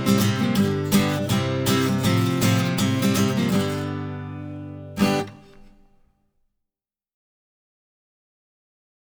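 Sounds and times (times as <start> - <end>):
guitar playback: 0.0 - 6.1.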